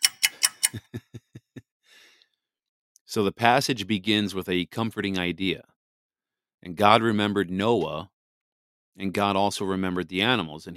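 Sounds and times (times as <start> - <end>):
clock ticking: 0.0 - 0.9
laughter: 0.6 - 1.6
speech: 0.7 - 1.0, 3.1 - 5.7, 6.6 - 8.1, 9.0 - 10.7.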